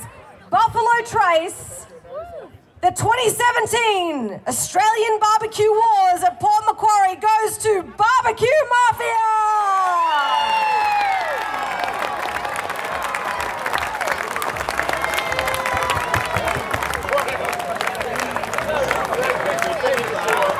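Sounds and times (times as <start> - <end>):
speech: 1.0 - 2.0, 2.8 - 9.5
crowd cheering and applauding: 9.8 - 20.5.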